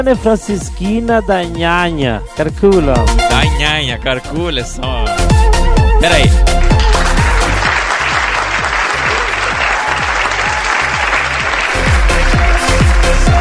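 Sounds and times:
speech: 0.0 - 5.4, 6.0 - 6.6
audience applause: 6.6 - 13.4.

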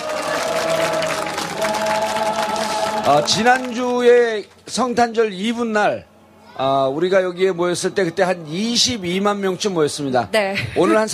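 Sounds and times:
large outdoor crowd applauding: 0.0 - 4.7
speech: 3.1 - 11.1.

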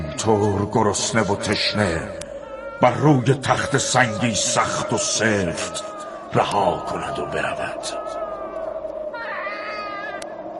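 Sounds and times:
speech: 0.2 - 2.2, 2.8 - 8.1
newborn baby crying: 5.4 - 8.4, 9.2 - 10.3.

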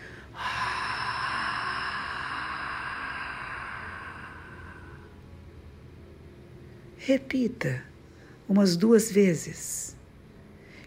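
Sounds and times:
slow long exhalation through an open glottis during a breathing exercise: 0.0 - 5.6
speech: 7.0 - 7.9, 8.5 - 9.8.

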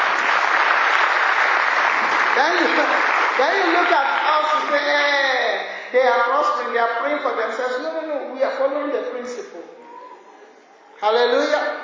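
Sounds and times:
audience clapping: 0.0 - 5.1
speech: 2.4 - 9.7, 11.0 - 11.8.

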